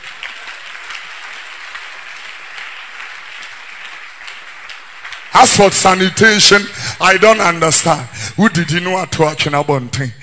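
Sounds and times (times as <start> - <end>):
audience clapping: 0.0 - 8.0
speech: 5.4 - 10.2.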